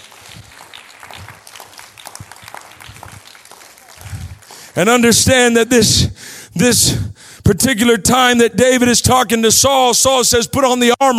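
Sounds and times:
audience clapping: 0.0s - 5.4s
speech: 4.8s - 11.1s.

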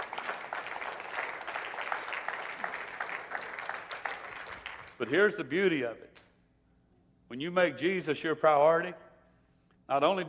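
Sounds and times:
crowd clapping hands: 0.0s - 5.3s
speech: 5.0s - 6.2s, 7.3s - 9.0s, 9.9s - 10.2s.

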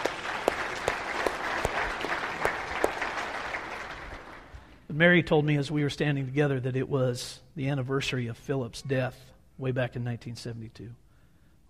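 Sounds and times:
audience applause: 0.0s - 4.8s
speech: 5.0s - 11.0s.

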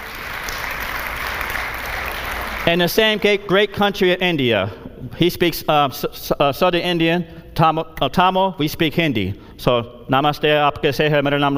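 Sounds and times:
crowd clapping for a missionary: 0.0s - 3.5s
speech: 2.6s - 11.5s.

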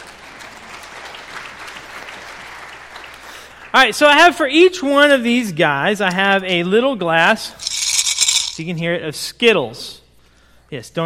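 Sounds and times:
audience applause: 0.0s - 3.7s
speech: 3.7s - 7.7s, 8.6s - 10.0s, 10.7s - 11.0s.

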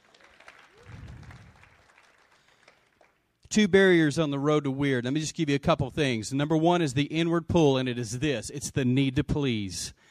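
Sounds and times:
crowd clapping in a large room: 0.0s - 3.4s
speech: 3.5s - 10.0s.

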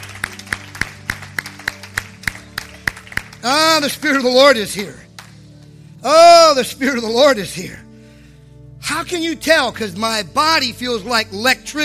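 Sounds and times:
audience clapping: 0.0s - 4.3s, 5.0s - 5.4s
speech: 3.4s - 5.0s, 6.0s - 7.8s, 8.8s - 11.8s.

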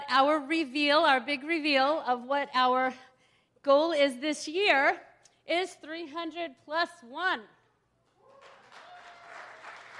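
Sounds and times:
speech: 0.1s - 7.6s
audience applause: 8.4s - 9.9s.

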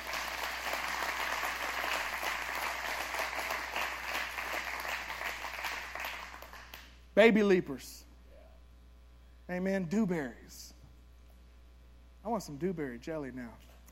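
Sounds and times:
audience clapping: 0.0s - 7.0s
speech: 7.2s - 8.0s, 9.5s - 10.8s, 12.2s - 13.8s.

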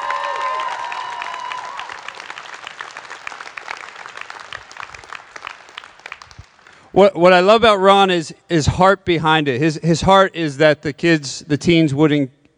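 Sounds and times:
audience round of applause: 0.0s - 6.9s
speech: 7.0s - 12.4s.

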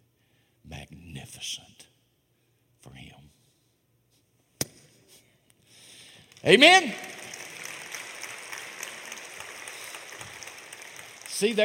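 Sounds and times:
speech: 0.7s - 1.9s, 6.4s - 7.1s, 11.4s - 11.6s
crowd clapping: 6.2s - 11.6s.

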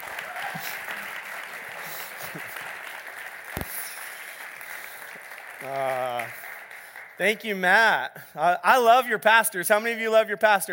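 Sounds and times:
audience applauding: 0.0s - 7.9s
speech: 5.6s - 6.4s, 7.2s - 10.7s.

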